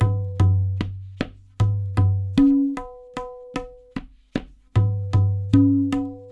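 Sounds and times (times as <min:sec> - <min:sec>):
percussion loop: 0:00.0 - 0:06.2.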